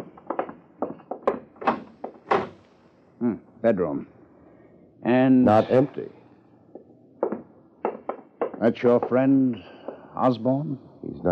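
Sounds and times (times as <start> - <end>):
door being opened with wooden thunks and knocks: 0.0 - 2.8, 6.7 - 10.1
speech: 3.2 - 4.2, 5.0 - 6.2, 8.6 - 11.3.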